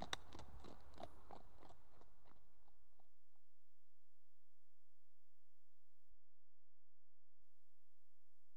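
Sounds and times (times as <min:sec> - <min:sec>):
one horse walking on approach: 0:00.0 - 0:03.1.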